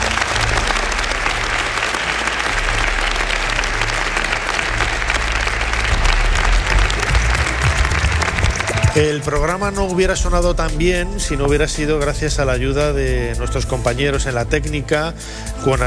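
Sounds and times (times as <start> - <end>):
audience applause: 0.0 - 9.3
speech: 9.0 - 15.8.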